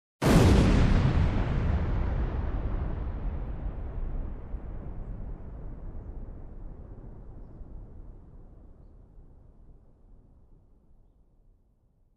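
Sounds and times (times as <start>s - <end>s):
bomb explosion: 0.2s - 9.3s.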